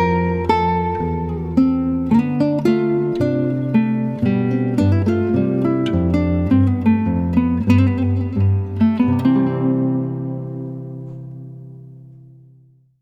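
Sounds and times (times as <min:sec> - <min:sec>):
classical guitar piece: 0:00.0 - 0:12.9.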